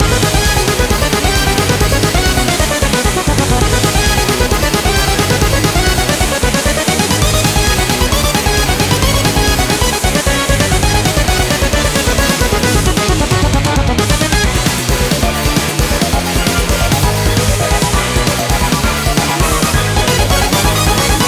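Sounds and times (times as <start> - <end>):
boss battle main music loop: 0.0 - 21.2.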